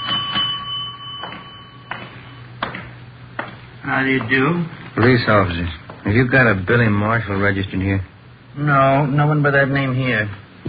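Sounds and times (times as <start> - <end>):
hotel desk bell ringing: 0.0 - 2.8
speech: 3.9 - 10.6.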